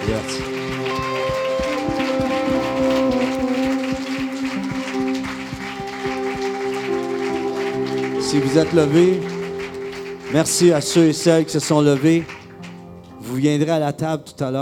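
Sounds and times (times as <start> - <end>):
sustained keyboard-like chords: 0.0 - 12.1
audience clapping: 0.0 - 13.4
speech: 0.1 - 0.6, 8.5 - 9.3, 10.3 - 12.4, 13.3 - 14.6.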